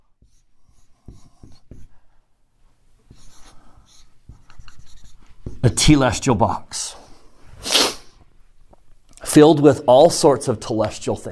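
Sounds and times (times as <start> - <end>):
writing on a board during a lecture: 0.0 - 2.2, 3.0 - 5.8
speech: 5.6 - 7.0, 9.3 - 11.2.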